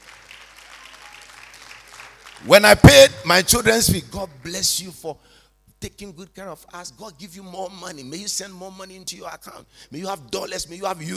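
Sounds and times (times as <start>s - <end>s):
crowd clapping: 0.0s - 3.1s
speech: 2.4s - 11.1s.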